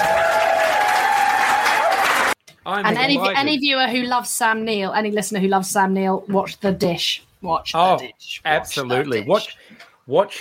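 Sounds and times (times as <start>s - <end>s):
wild applause sound effect from a button: 0.0s - 2.4s
speech: 2.7s - 10.3s.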